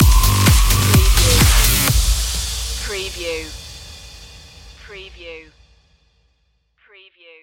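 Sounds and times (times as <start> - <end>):
high drive stinger: 0.0 - 5.8.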